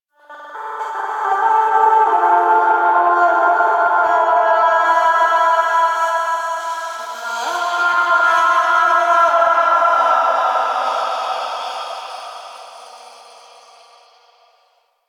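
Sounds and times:
music: 0:00.1 - 0:11.4.

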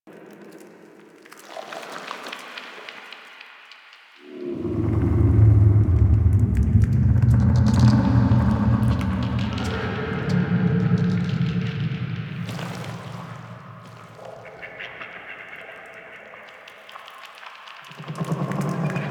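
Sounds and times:
exterior hub ambience: 0:04.2 - 0:15.8.

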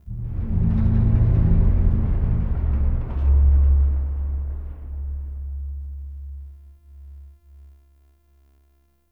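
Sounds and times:
low-frequency metallic boom: 0:00.0 - 0:07.1.

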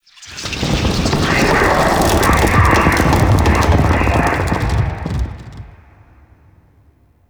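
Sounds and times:
tree creaking: 0:00.4 - 0:06.0.

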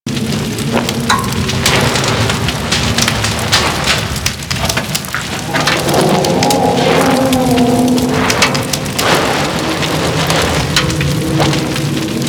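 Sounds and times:
fire burning on a ship: 0:00.0 - 0:12.2.

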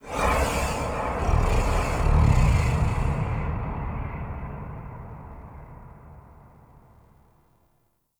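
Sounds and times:
sky breaths ambience: 0:00.0 - 0:07.1.

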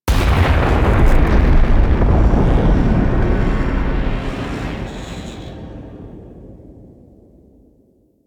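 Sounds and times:
transition ship rumble: 0:00.4 - 0:06.4.

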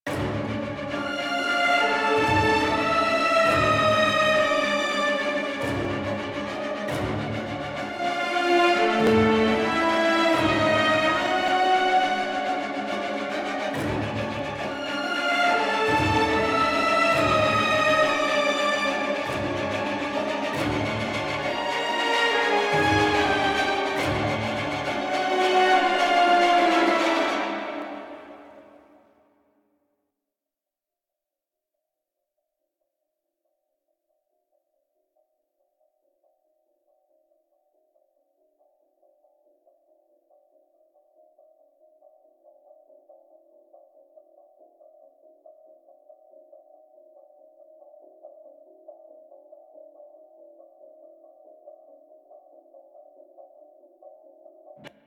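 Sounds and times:
combat music melody: 0:00.1 - 0:28.9.

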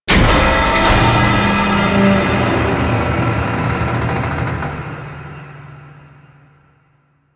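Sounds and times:
blast door pressurizing: 0:00.1 - 0:05.2.

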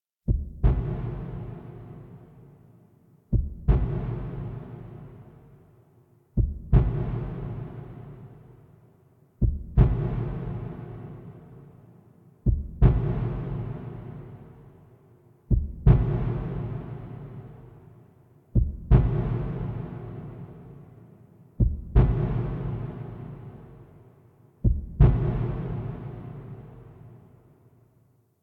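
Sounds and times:
heartbeat: 0:00.3 - 0:01.5, 0:03.3 - 0:04.5, 0:06.4 - 0:07.4, 0:09.4 - 0:10.4, 0:12.5 - 0:13.4, 0:15.5 - 0:16.6, 0:18.6 - 0:19.7, 0:21.6 - 0:22.8, 0:24.6 - 0:25.8.

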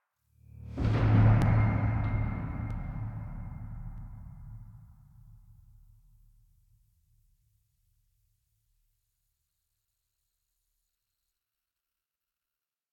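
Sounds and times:
metallic low frequency effects: 0:00.4 - 0:05.6.

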